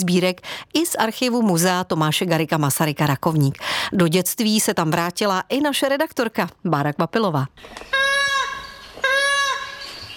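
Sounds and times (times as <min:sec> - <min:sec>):
speech: 0:00.0 - 0:08.0
toy doll crying in a pram: 0:07.8 - 0:10.1.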